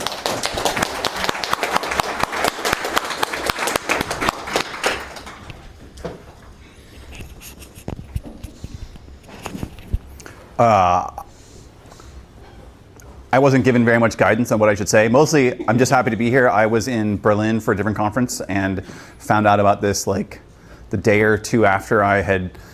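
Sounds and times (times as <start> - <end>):
audience round of applause: 0.0 - 5.8
speech: 10.6 - 11.1, 13.4 - 22.7.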